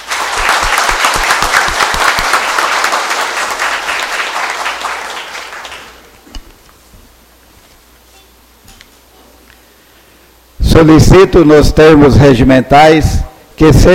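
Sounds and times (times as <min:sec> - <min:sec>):
applause: 0:00.0 - 0:06.1
speech: 0:10.8 - 0:13.9.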